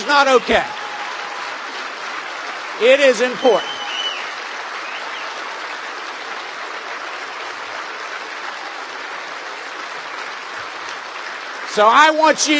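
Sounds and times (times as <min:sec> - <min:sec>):
audience applause: 0:00.0 - 0:12.5
speech: 0:00.1 - 0:00.8, 0:02.8 - 0:03.7, 0:11.8 - 0:12.5.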